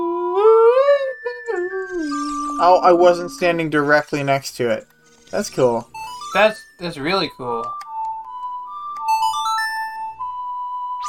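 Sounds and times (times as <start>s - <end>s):
steady sustained tone: 0.0s - 6.6s
video game success chime: 1.3s - 7.6s, 9.1s - 11.0s
speech: 2.6s - 7.8s.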